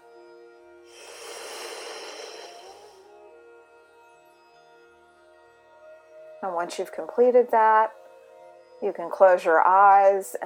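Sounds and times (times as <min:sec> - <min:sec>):
slow breathy exhale voiced as he during a guided breathing exercise: 0:00.9 - 0:03.1
speech: 0:06.4 - 0:08.0, 0:08.8 - 0:10.4.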